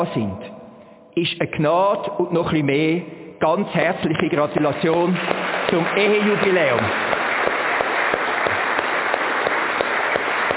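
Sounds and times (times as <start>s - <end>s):
speech: 0.0s - 0.4s, 1.2s - 7.1s
sharper claps in rhythm: 4.2s - 10.5s
crowd applauding: 4.6s - 10.5s.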